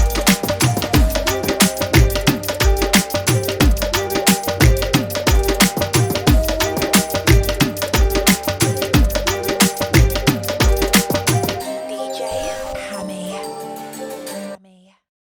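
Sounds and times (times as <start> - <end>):
dhol remix of a Punjabi song: 0.0 - 11.8.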